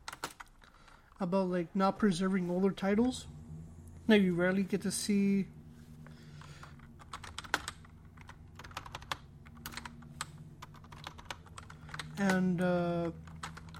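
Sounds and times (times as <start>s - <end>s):
speech: 1.2s - 3.4s, 4.1s - 5.6s, 12.2s - 13.2s
typing on a computer keyboard: 6.6s - 12.4s, 13.0s - 13.7s.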